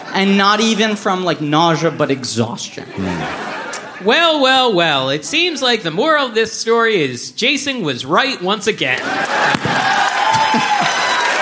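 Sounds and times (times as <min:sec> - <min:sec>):
speech: 0:00.2 - 0:09.9
laughter: 0:02.8 - 0:05.9, 0:09.0 - 0:11.3
cheering: 0:08.9 - 0:11.3.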